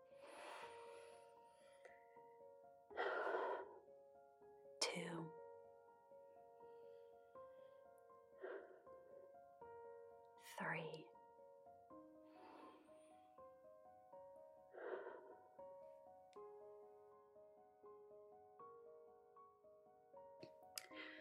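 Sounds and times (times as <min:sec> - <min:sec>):
soft sustained musical tone: 0:00.0 - 0:21.2
deep breaths: 0:00.1 - 0:02.2, 0:02.9 - 0:03.8, 0:08.4 - 0:09.0, 0:12.3 - 0:13.1, 0:14.7 - 0:15.4, 0:20.8 - 0:21.2.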